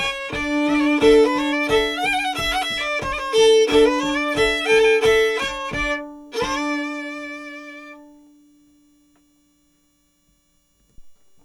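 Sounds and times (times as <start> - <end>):
march music: 0.0 - 8.2.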